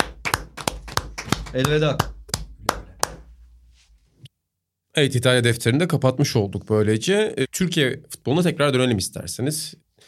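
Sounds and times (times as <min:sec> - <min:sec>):
hands clapping: 0:00.0 - 0:03.3
speech: 0:01.5 - 0:02.8, 0:05.0 - 0:10.0.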